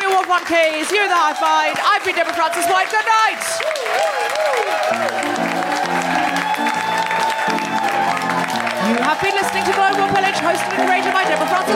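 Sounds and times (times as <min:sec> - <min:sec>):
audience applause and cheering: 0:00.0 - 0:11.7
speech: 0:00.3 - 0:05.6, 0:08.9 - 0:11.7.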